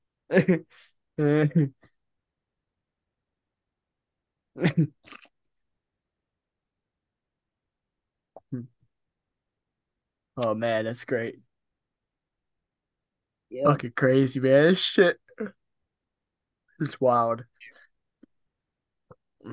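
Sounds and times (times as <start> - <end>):
speech: 0.3 - 1.9, 4.6 - 5.2, 8.5 - 8.7, 10.4 - 11.4, 13.5 - 15.6, 16.8 - 17.8
cough: 4.6 - 5.2.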